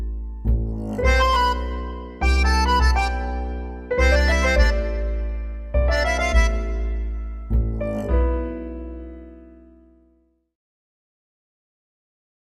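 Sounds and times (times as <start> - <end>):
tango music: 0.0 - 9.7.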